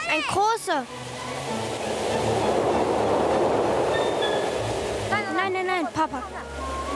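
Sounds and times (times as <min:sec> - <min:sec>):
speech: 0:00.1 - 0:01.6, 0:05.5 - 0:06.8
train arriving: 0:01.1 - 0:05.2.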